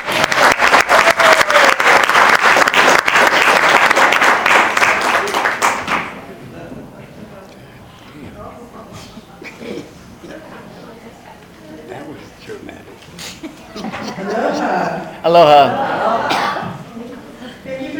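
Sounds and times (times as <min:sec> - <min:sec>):
audience applause: 0:00.0 - 0:06.2
laughter: 0:12.5 - 0:17.6.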